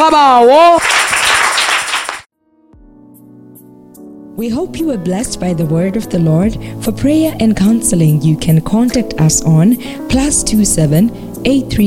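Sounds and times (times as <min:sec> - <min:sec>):
speech: 0:00.4 - 0:00.9, 0:04.4 - 0:11.8
audience clapping: 0:00.4 - 0:02.3.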